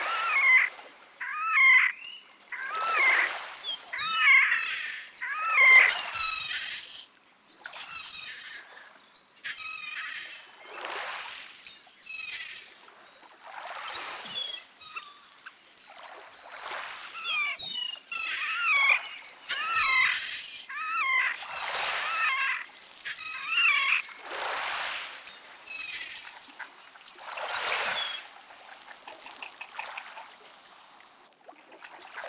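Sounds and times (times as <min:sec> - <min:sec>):
animal calls in the Rovorée protected area: 0:00.0 - 0:07.0, 0:17.2 - 0:24.2, 0:25.4 - 0:31.0.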